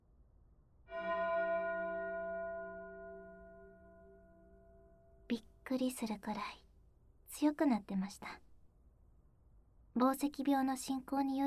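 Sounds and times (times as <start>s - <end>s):
distant bell ringing: 0.9s - 5.3s
speech: 5.3s - 6.6s, 7.3s - 8.4s, 10.0s - 11.4s.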